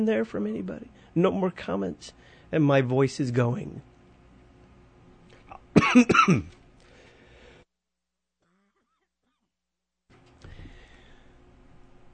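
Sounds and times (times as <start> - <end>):
speech: 0.0 - 3.9, 5.8 - 6.6
quiet breathing: 2.1 - 2.6, 6.8 - 7.7, 10.4 - 11.6
man with allergies coughing: 5.5 - 6.6.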